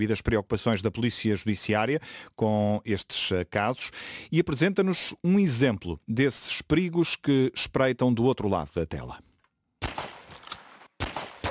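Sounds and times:
speech: 0.0 - 9.3
gunfire in the online video game Roblox: 9.8 - 11.5.

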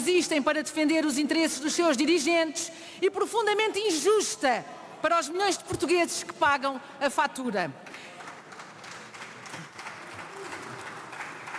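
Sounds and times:
speech: 0.0 - 8.1
sparse applause from deputies: 7.8 - 11.5.

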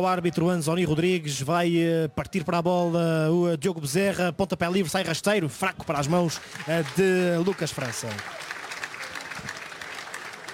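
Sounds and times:
speech: 0.0 - 8.5
football fans applauding Santa Clara's performance: 5.8 - 10.5.

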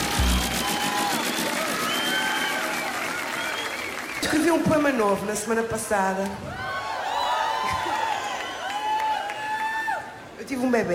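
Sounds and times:
crowd cheering and hollering: 0.0 - 4.2, 6.5 - 10.3
crowd clapping: 0.0 - 5.0, 7.6 - 9.8
speech: 4.2 - 6.6, 10.5 - 10.9.

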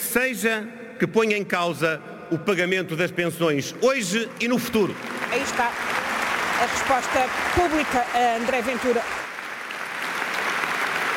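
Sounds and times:
speech: 0.1 - 6.0, 6.6 - 9.2
large congress audience applauding: 3.9 - 11.1.

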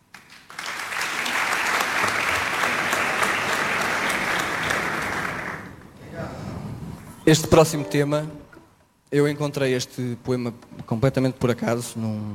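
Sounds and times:
audience clapping at a live music performance: 0.0 - 6.0
speech: 7.2 - 8.4, 9.1 - 12.3.

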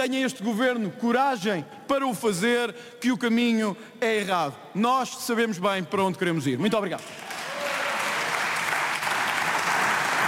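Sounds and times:
speech: 0.0 - 7.3
standing applause from parliament deputies: 7.0 - 10.2.

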